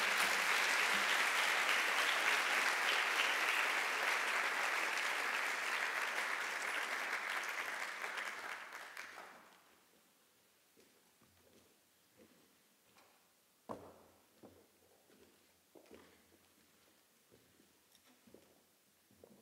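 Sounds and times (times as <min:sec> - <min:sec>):
audience applause for speakers at a panel event: 0:00.0 - 0:09.6.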